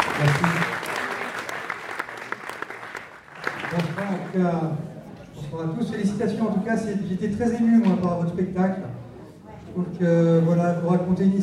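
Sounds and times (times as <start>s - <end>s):
audience applause after a stage performance: 0.0s - 4.4s
speech: 0.2s - 0.6s, 4.1s - 4.9s, 5.5s - 8.9s, 9.8s - 11.4s.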